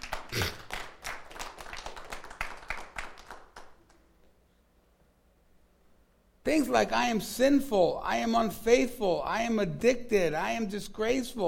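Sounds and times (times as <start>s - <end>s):
audience clapping: 0.0s - 4.1s
speech: 0.3s - 0.6s, 6.5s - 11.4s.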